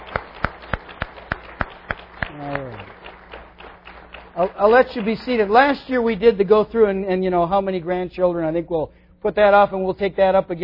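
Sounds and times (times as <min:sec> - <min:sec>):
applause: 0:00.0 - 0:06.2
speech: 0:04.4 - 0:10.6.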